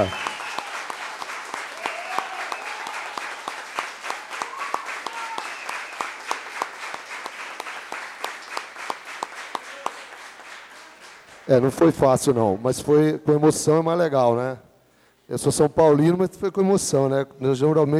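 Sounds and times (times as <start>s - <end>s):
speech: 0.0s - 0.2s, 11.5s - 14.7s, 15.3s - 17.9s
audience applause: 0.0s - 11.9s.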